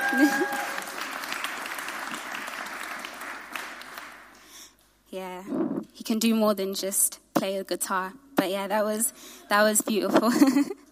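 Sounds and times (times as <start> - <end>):
church audience applause: 0.0 - 4.4
speech: 0.1 - 0.7, 5.2 - 10.8.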